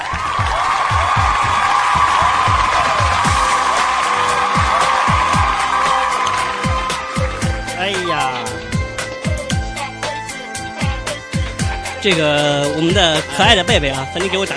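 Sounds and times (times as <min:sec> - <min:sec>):
audience applause and cheering: 0:00.0 - 0:10.4
rhythmic thumping beat: 0:00.0 - 0:14.5
speech: 0:12.0 - 0:14.5.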